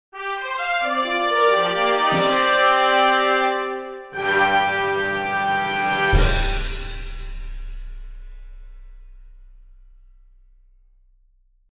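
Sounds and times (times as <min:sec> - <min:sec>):
fanfare: 0:00.2 - 0:07.5.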